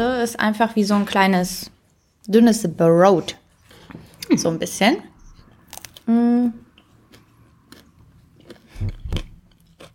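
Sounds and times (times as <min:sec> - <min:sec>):
speech: 0:00.0 - 0:05.1, 0:06.1 - 0:06.6
chewing and biting a vegan Lidl bratwurst: 0:05.6 - 0:06.1, 0:06.7 - 0:09.9.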